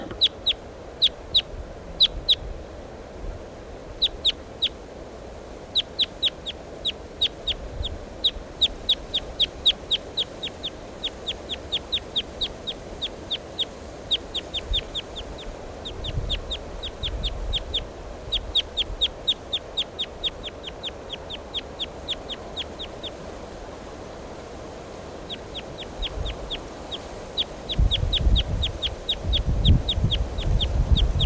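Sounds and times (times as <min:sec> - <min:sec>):
wild bird calling: 0:00.0 - 0:02.4, 0:03.8 - 0:04.8, 0:05.7 - 0:31.2.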